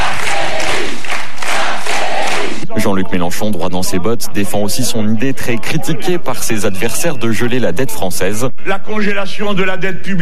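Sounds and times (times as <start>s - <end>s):
rally crowd cheering: 0.0s - 2.6s
speech: 3.1s - 10.2s.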